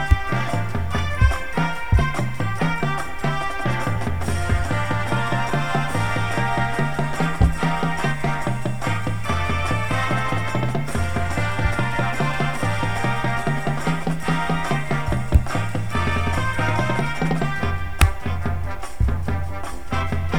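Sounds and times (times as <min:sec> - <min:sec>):
bass with music: 0:00.0 - 0:20.3.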